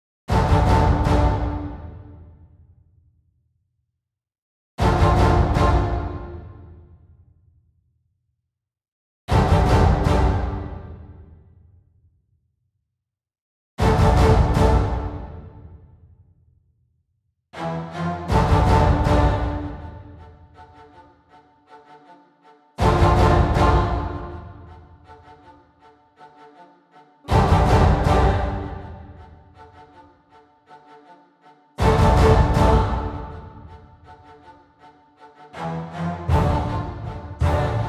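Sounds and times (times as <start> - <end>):
epic anthem music: 0.3 - 2.3, 4.8 - 6.8, 9.3 - 11.3, 13.8 - 15.8, 17.6 - 22.2, 22.8 - 31.2, 31.8 - 37.8.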